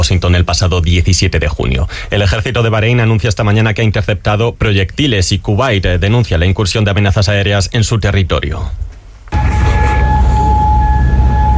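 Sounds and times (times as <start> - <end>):
speech: 0.0 - 9.6
air raid siren wailing: 9.3 - 11.5
constant low rumble: 9.3 - 11.5.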